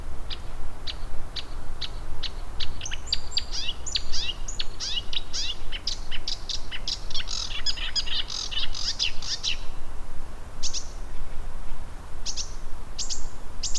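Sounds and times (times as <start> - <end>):
spotted crake whistled calls: 0.1 - 9.8, 10.6 - 11.4, 12.2 - 13.7.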